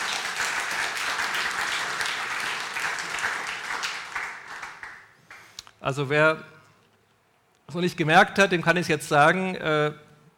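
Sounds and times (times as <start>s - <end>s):
audience applause: 0.0s - 5.5s
speech: 5.8s - 6.6s, 7.7s - 10.0s.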